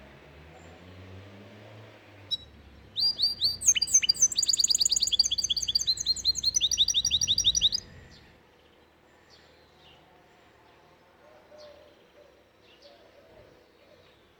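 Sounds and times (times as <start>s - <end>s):
canary singing: 2.3s - 8.4s.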